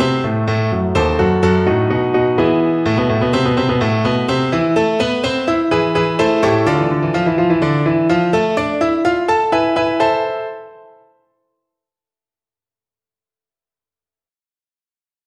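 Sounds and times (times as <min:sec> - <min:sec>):
piano piece: 0:00.0 - 0:11.3.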